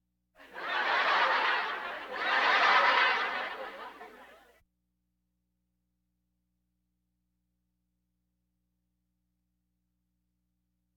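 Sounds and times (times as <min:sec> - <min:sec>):
audience laughter: 0:00.4 - 0:04.5.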